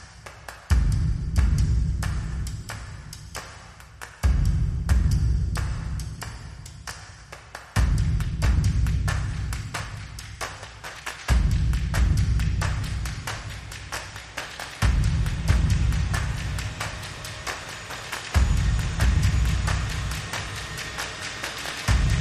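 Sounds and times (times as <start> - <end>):
drums: 0.0 - 22.1
bass: 0.7 - 3.6, 4.2 - 7.1, 7.8 - 10.6, 11.3 - 13.8, 14.8 - 17.7, 18.3 - 20.7, 21.9 - 22.1.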